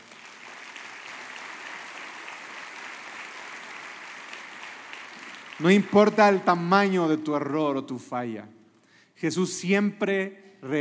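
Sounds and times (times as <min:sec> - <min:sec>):
audience applause: 0:00.0 - 0:06.6
speech: 0:05.6 - 0:08.6, 0:09.2 - 0:10.7.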